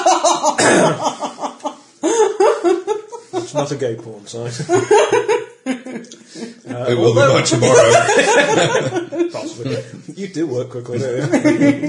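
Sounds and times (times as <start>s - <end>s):
laughter: 0.0s - 11.8s
person coughing after choking on ginger beer: 0.6s - 1.1s
speech: 3.6s - 5.4s, 6.0s - 11.8s.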